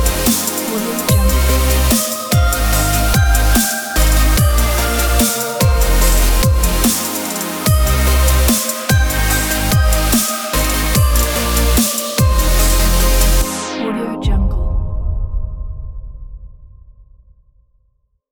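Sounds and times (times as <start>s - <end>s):
beautiful dubstep music: 0.0s - 14.5s.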